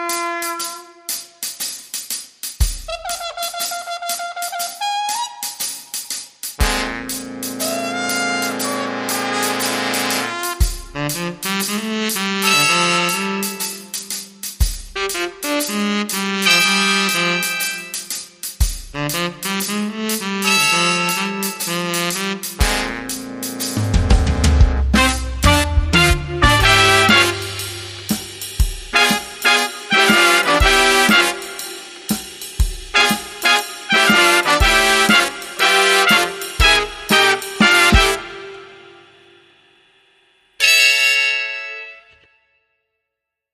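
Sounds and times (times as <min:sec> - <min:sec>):
horns: 0:00.0 - 0:01.7, 0:02.7 - 0:39.5
drums: 0:00.0 - 0:41.2.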